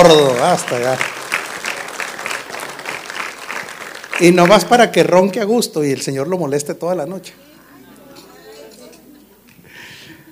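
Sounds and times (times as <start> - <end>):
speech: 0.0 - 1.1, 4.2 - 7.5
audience applause: 0.0 - 5.0.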